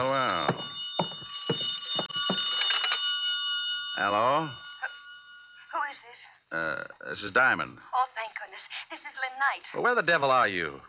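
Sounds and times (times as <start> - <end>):
telephone ringing: 0.0 - 6.0
dull thumps: 0.4 - 2.5
speech: 4.0 - 4.6, 6.5 - 8.0, 9.4 - 10.8.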